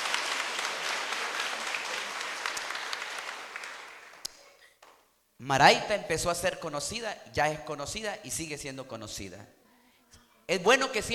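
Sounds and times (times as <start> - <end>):
audience applause: 0.0 - 4.3
speech: 5.4 - 9.6, 10.5 - 11.1.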